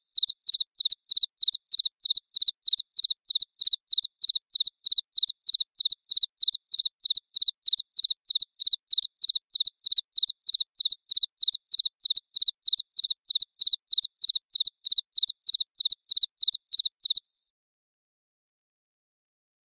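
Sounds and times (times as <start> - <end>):
cricket chirping: 0.1 - 17.3.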